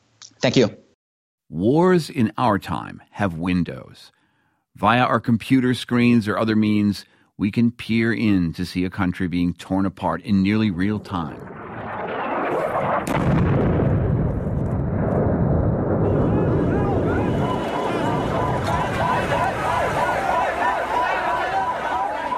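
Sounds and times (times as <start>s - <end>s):
speech: 0.4s - 0.8s, 1.5s - 4.2s, 4.8s - 11.6s, 13.0s - 13.6s
bombing explosions in Sana'a, Yemen during war: 11.3s - 22.3s
people's voices: 16.1s - 22.3s.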